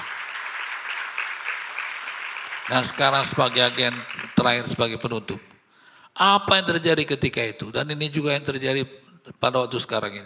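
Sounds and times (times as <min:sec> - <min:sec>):
audience applause: 0:00.0 - 0:05.0
speech: 0:02.7 - 0:05.5, 0:06.2 - 0:10.2.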